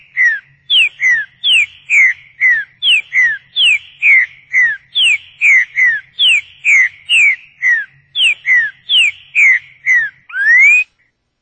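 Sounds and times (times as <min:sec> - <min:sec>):
Rebicador song whistles falling in pitch: 0:00.2 - 0:11.0.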